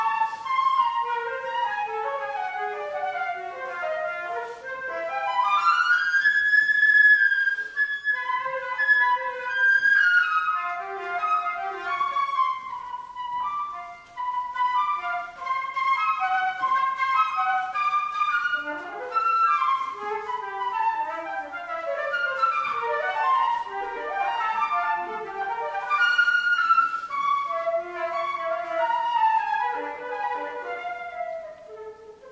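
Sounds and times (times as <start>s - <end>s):
transverse flute sonata: 0.0s - 32.3s.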